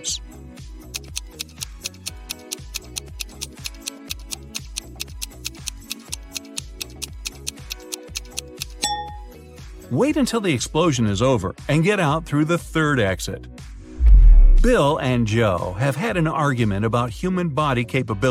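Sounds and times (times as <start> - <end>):
speech: 0.0 - 0.4, 9.9 - 13.5, 14.6 - 18.2
countdown timer ticking: 0.8 - 9.2.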